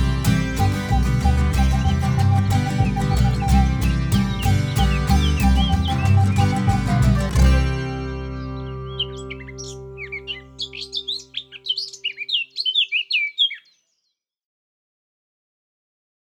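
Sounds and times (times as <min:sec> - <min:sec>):
instrumental music: 0:00.0 - 0:12.0.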